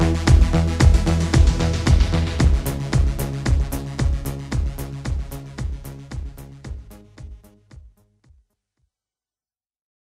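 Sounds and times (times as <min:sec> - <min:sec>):
Korg Pa900 modern beat: 0:00.0 - 0:08.0.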